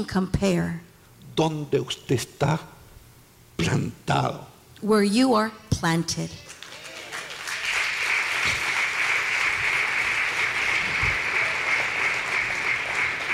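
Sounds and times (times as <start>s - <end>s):
speech: 0.0s - 2.8s, 3.6s - 6.5s
audience applauding: 6.5s - 13.3s.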